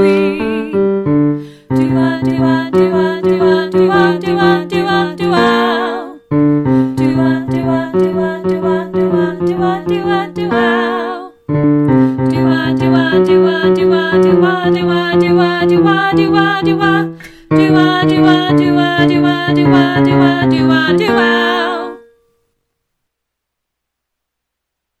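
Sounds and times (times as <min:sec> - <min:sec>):
alto parts: 0:00.0 - 0:22.1.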